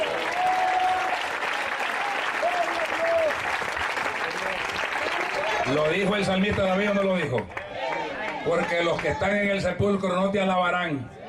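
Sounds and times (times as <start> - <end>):
applause: 0.0 - 9.6
speech: 5.7 - 7.6, 8.4 - 11.2.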